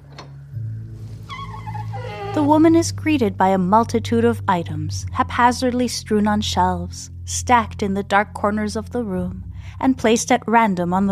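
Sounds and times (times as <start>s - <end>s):
heavy oak door creaking open: 0.0s - 3.0s
speech: 2.4s - 11.1s.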